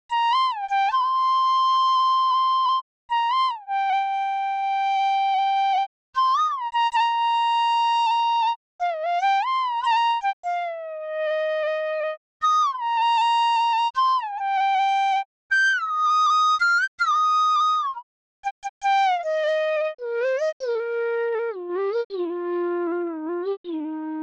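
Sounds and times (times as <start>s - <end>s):
bansuri flute playing hindol: 0.1s - 24.2s.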